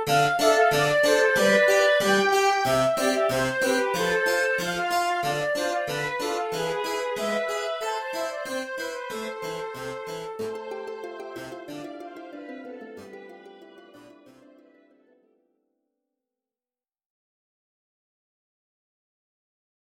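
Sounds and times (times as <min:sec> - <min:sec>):
sad town music: 0:00.1 - 0:15.2.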